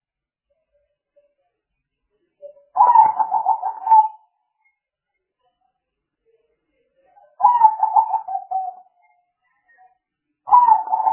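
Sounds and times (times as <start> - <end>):
spotted dove cooing: 2.8 - 4.2, 7.4 - 8.8, 10.5 - 11.1.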